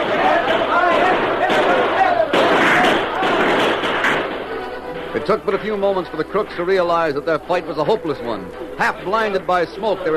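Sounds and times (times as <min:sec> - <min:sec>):
people shouting: 0:00.0 - 0:05.2
gunfire in a shootout: 0:00.0 - 0:05.8
speech: 0:05.3 - 0:10.1.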